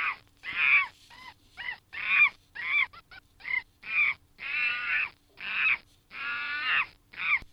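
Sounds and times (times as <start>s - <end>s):
monkey call: 1.6s - 7.4s.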